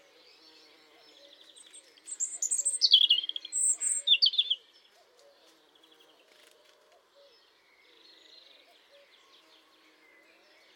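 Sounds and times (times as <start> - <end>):
European robin singing: 1.5 - 4.6.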